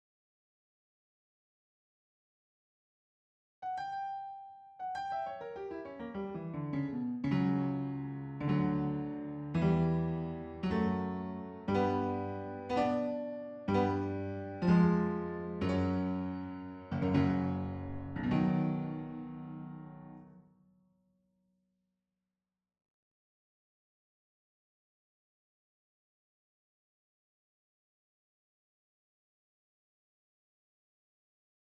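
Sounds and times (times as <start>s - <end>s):
piano: 3.6s - 20.8s.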